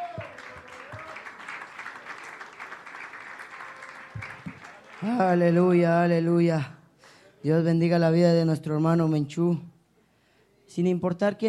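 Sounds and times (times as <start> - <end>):
audience clapping: 0.0 - 5.7
speech: 5.0 - 6.8, 7.4 - 9.7, 10.7 - 11.4.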